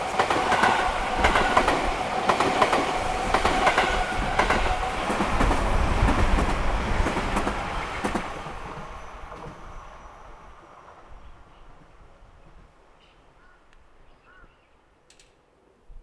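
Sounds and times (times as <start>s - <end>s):
up-line train passing: 0.0s - 12.3s.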